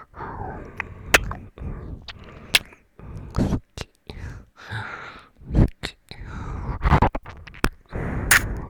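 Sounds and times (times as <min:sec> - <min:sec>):
ASMR ear licking sounds: 0:00.6 - 0:02.8, 0:07.0 - 0:08.6.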